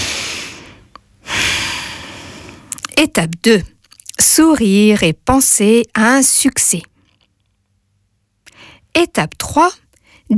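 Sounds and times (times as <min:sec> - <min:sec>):
deep airy inhale: 0:00.0 - 0:02.7
noise: 0:00.0 - 0:10.3
speech: 0:03.0 - 0:06.9, 0:09.0 - 0:10.3.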